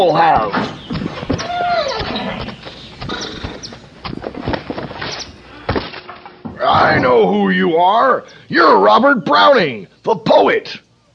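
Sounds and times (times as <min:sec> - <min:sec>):
speech: 0:00.0 - 0:00.8, 0:06.8 - 0:10.8
horse hoof steps sound effect in an audio drama: 0:00.2 - 0:05.4.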